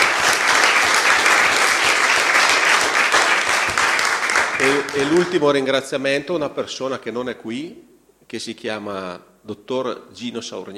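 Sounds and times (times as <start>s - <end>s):
audience applause: 0.0s - 5.6s
speech: 5.0s - 10.7s.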